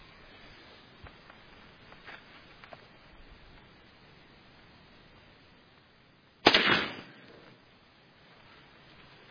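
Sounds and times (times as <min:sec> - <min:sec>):
gunshots from small powerful Winchester shells fired at a small target: 0:06.4 - 0:07.3.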